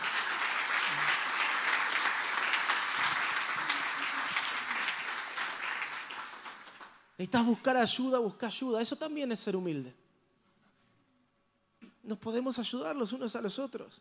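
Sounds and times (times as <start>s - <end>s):
crowd applauding in a large room: 0.0s - 7.1s
speech: 7.2s - 10.0s, 12.1s - 14.0s.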